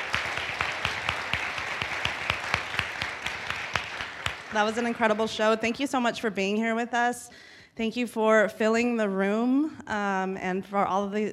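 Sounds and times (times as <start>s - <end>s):
audience applause after storytelling show: 0.0s - 5.6s
speech: 4.5s - 11.3s.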